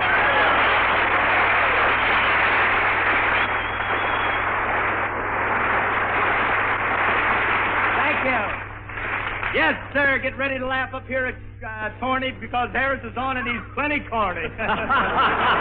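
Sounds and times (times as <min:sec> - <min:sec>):
studio audience applause: 0:00.0 - 0:09.9, 0:15.0 - 0:15.5
low hum: 0:00.0 - 0:15.5
speech: 0:10.2 - 0:15.5
laughter: 0:14.3 - 0:15.5.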